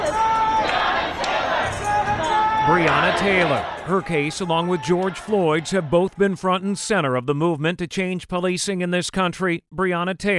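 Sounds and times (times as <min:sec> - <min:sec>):
crowds chanting a name: 0:00.0 - 0:06.1
speech: 0:02.7 - 0:10.3.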